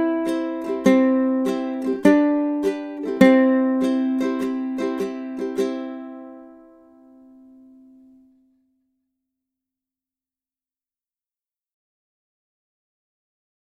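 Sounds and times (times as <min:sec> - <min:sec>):
ukulele tune: 0:00.0 - 0:08.5.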